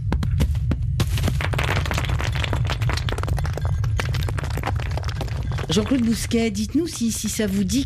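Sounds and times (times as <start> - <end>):
rockfall near a volcano: 1.0 - 6.0
speech: 5.7 - 7.8.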